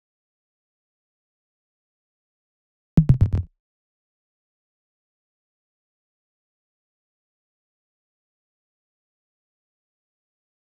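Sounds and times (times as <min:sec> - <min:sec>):
electronic effect: 0:03.0 - 0:03.5.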